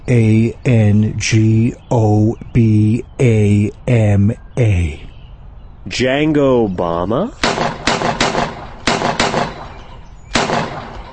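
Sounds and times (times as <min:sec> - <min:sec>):
speech: 0:00.1 - 0:05.1, 0:05.8 - 0:07.6
gunshots in a western-style comedy sketch: 0:07.4 - 0:11.1.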